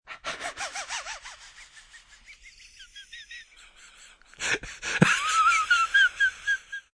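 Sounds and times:
man laughing wheezy and breathless, gasping: 0.2s - 6.9s.

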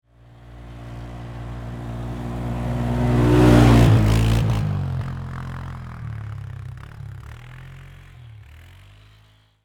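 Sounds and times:
Polaris 500cc four-wheeler ATV passing by at medium speed: 0.1s - 9.6s.

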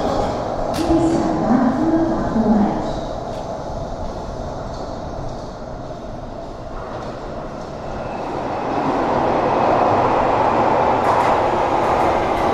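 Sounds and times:
ambience of a London Underground tube station: 0.0s - 12.5s.

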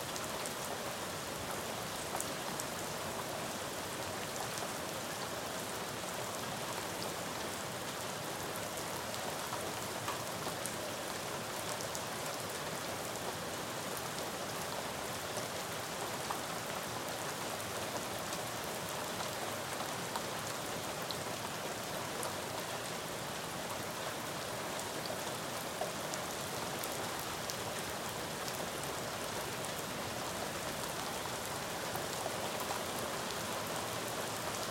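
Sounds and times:
splatty rain on a neighborhood street: 0.0s - 34.6s.

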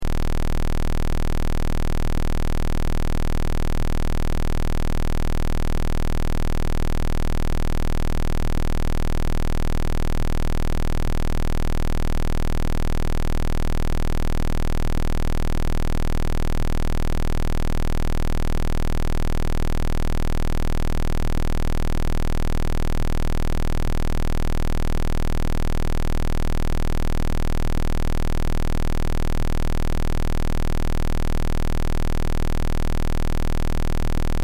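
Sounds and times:
square wave test tone: 0.0s - 34.4s.

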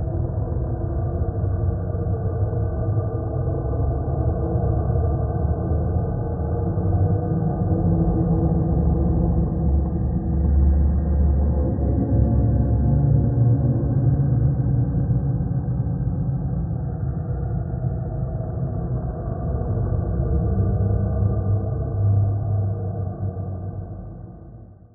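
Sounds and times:
haunted horror castle ambience drone: 0.0s - 24.9s.

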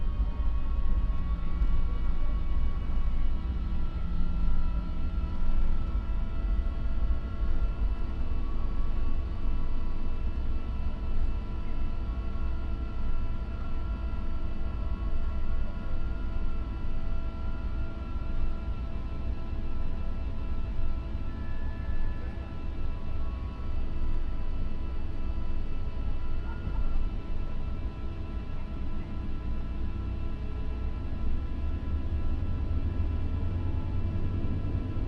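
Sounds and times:
1955 Lockheed L-1049 Super Constellation landing heard from the interior: 0.0s - 35.0s.

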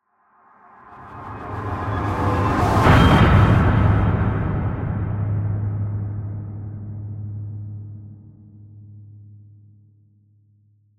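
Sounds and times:
distorted metallic horror crescendo and hit: 0.9s - 9.3s.

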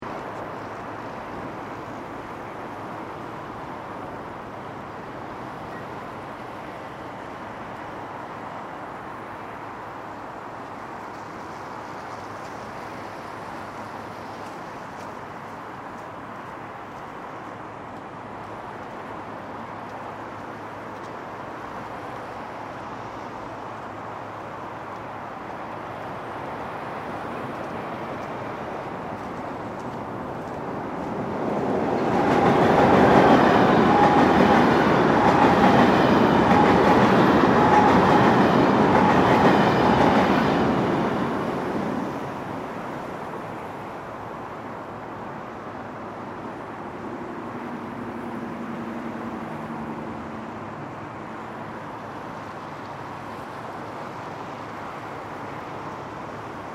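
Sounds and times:
traffic: 0.0s - 56.7s
train passing on top of a bridge: 0.0s - 56.7s.

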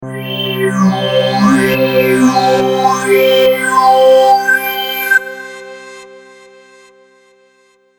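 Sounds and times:
evolving audio logo: 0.0s - 5.6s.

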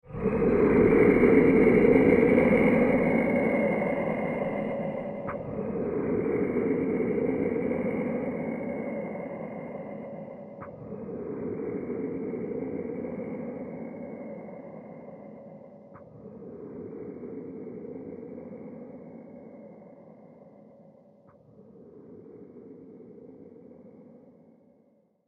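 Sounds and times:
scary soundscape: 0.0s - 24.3s.

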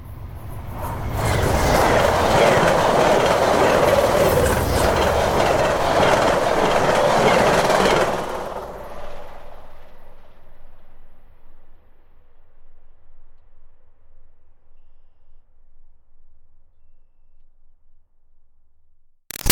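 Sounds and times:
fast passenger train passing: 0.1s - 9.5s.

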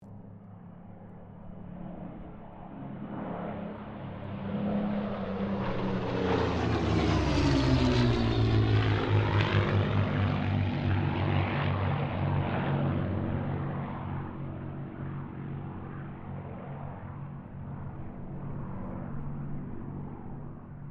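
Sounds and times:
distant Spitfire, Mustang and Kittyhawk aircraft passing: 0.0s - 20.8s.

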